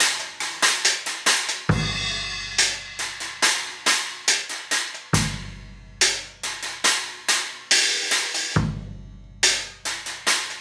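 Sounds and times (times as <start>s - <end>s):
cymbal: 0.0s - 10.5s
kick drum: 1.7s - 2.4s, 5.1s - 6.4s, 8.6s - 10.2s.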